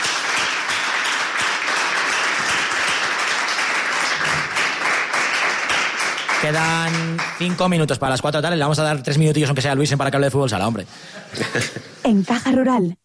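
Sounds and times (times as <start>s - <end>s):
group applause: 0.0s - 8.0s
speech: 6.5s - 13.0s
laughter: 11.0s - 12.0s.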